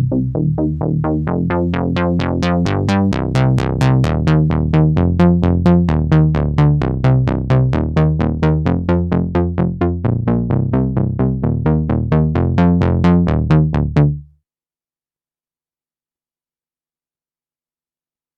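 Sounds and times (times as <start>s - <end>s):
classic sawtooth bass synth: 0.0s - 14.3s.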